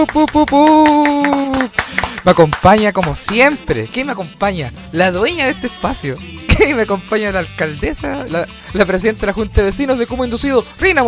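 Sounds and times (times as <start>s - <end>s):
speech: 0.0s - 1.6s, 2.2s - 11.0s
rhythmic clapping: 0.0s - 11.0s.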